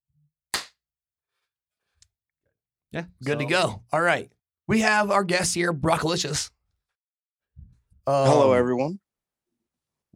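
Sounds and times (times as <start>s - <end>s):
hand clap for audio sync: 0.5s - 0.8s
speech: 2.9s - 6.6s, 8.0s - 9.0s.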